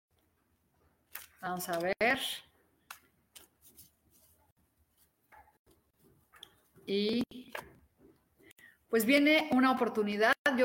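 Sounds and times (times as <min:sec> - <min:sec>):
playing cards being shuffled during a card reading: 0:01.1 - 0:02.0, 0:02.9 - 0:04.4
speech: 0:01.4 - 0:02.5, 0:06.9 - 0:07.7, 0:08.9 - 0:10.6.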